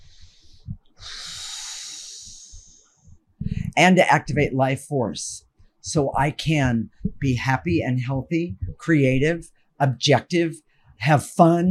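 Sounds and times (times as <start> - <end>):
deep breath: 0.0 - 3.8
speech: 3.8 - 11.7.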